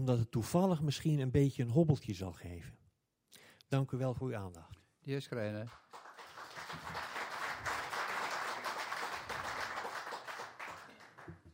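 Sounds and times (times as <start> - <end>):
speech: 0.0 - 2.8, 3.7 - 5.9
applause: 5.6 - 11.5.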